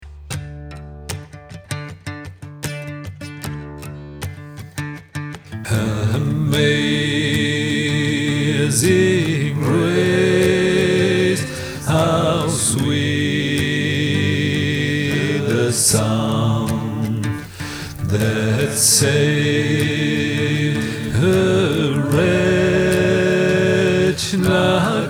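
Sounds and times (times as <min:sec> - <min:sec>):
four voices singing a hymn: 0:05.6 - 0:25.0.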